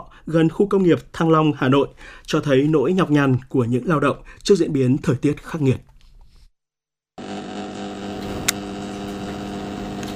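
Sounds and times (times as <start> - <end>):
speech: 0.1 - 5.9
old electric fan whirring: 7.2 - 10.1.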